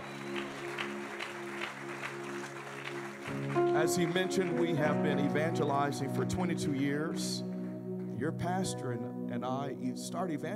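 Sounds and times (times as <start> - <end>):
audience clapping hands: 0.0 - 7.6
speech: 3.8 - 7.5, 8.2 - 10.5.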